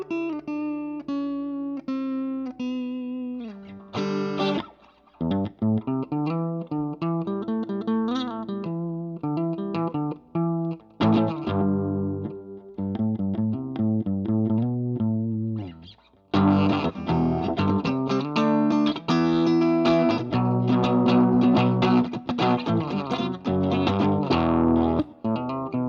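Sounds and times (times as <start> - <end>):
guitar: 0.0 - 25.8.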